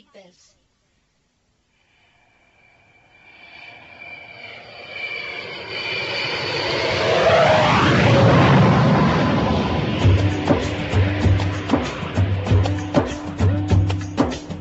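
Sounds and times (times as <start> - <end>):
jumbo jet airliner powering up for takeoff: 2.6 - 13.4
steady rhythmic thumping beat: 10.0 - 14.6.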